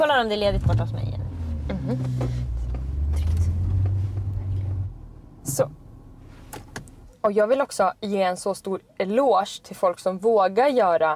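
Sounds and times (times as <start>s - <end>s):
speech: 0.2s - 1.2s, 1.8s - 2.6s, 5.5s - 5.8s, 7.2s - 11.1s
car rolling by: 0.4s - 7.0s.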